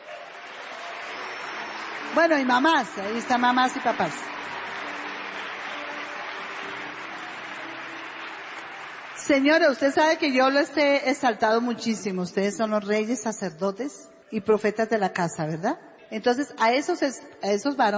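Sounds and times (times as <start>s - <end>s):
audience applause: 0.0s - 10.9s
speech: 2.1s - 4.3s, 9.3s - 17.9s.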